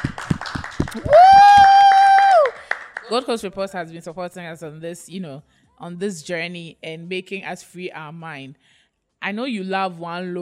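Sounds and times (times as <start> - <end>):
clapping: 0.0 - 3.1
speech: 0.9 - 1.2, 3.1 - 10.3.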